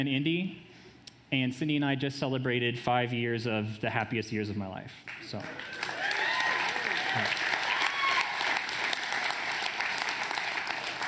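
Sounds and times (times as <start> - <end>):
speech: 0.0 - 0.7, 1.3 - 6.0, 7.1 - 7.4
audience applause: 5.3 - 11.0.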